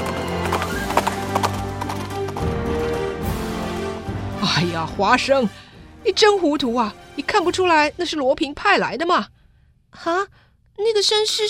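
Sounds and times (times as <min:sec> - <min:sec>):
horse galloping away: 0:00.0 - 0:03.5
speech: 0:04.8 - 0:09.3, 0:09.9 - 0:11.4.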